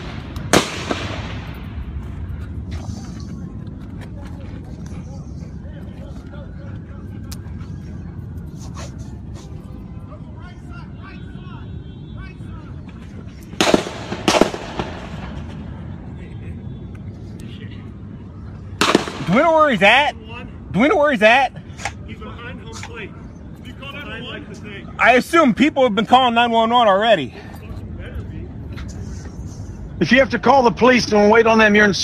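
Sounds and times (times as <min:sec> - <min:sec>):
repeated gunshots from a single gun: 0:00.0 - 0:01.7, 0:13.6 - 0:15.4, 0:18.8 - 0:19.4
speech: 0:19.4 - 0:20.2, 0:20.8 - 0:21.6, 0:25.0 - 0:27.5, 0:30.0 - 0:32.0.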